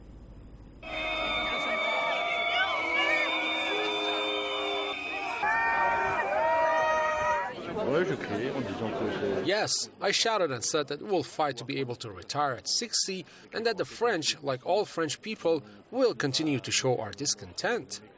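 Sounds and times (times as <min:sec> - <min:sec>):
shrill whistles: 0:00.8 - 0:07.5
crowd booing: 0:00.8 - 0:09.4
speech: 0:08.1 - 0:18.1.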